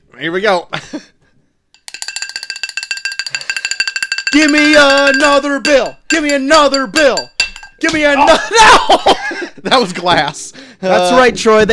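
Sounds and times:
speech: 0:00.1 - 0:01.1, 0:04.3 - 0:11.7
bell ringing rapidly: 0:01.8 - 0:07.9
laughter: 0:08.0 - 0:10.6.

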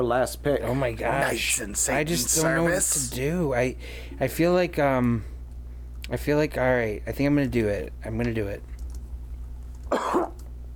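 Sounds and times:
speech: 0:00.0 - 0:05.3, 0:06.1 - 0:08.7
sneeze: 0:09.9 - 0:10.4.

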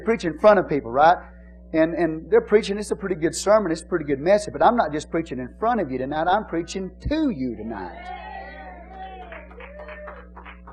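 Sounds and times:
speech: 0:00.0 - 0:08.2
a few audience members clapping hands: 0:08.0 - 0:10.7.

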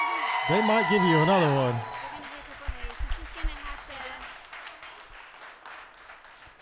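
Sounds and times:
audience clapping for an encore: 0:00.0 - 0:06.6
speech: 0:00.5 - 0:01.9.

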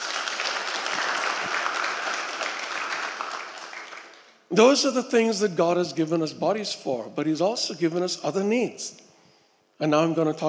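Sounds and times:
audience clapping: 0:00.0 - 0:04.5
speech: 0:04.5 - 0:09.1, 0:09.8 - 0:10.4.

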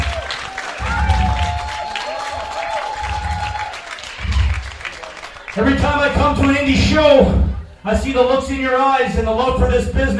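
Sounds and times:
crowd clapping and cheering: 0:00.0 - 0:07.8
speech: 0:05.6 - 0:10.1.

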